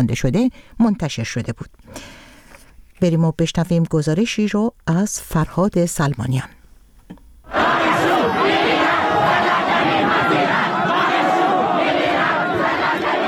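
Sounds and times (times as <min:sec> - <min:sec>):
speech: 0:00.0 - 0:02.2, 0:03.0 - 0:07.7
students in Iran chanting protest slogans against recent restrictions: 0:07.5 - 0:13.2.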